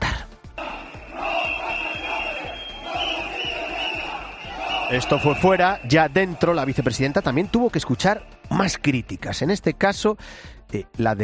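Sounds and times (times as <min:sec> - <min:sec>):
shrill steady whistle or alarm-like tone: 0:00.6 - 0:07.5
crowd of protesters shouting and chanting: 0:00.6 - 0:08.2
speech: 0:04.9 - 0:11.2.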